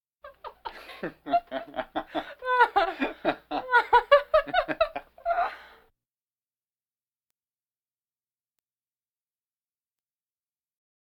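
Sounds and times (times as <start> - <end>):
laughter: 0.3 - 5.5
breathing vocal effects: 5.3 - 5.9.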